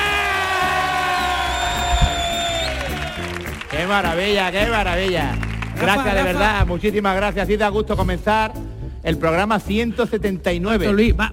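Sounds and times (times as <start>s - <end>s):
studio audience screaming and cheering at a live show: 0.0s - 6.2s
speech: 3.8s - 11.3s.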